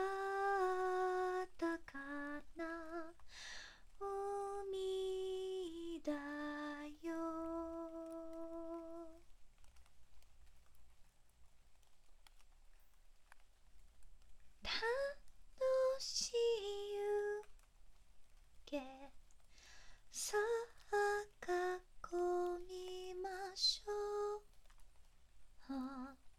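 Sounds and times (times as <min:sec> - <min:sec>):
person singing lullabies: 0:00.0 - 0:09.3, 0:14.6 - 0:17.7, 0:18.6 - 0:24.6, 0:25.6 - 0:26.3
rain: 0:00.0 - 0:26.3.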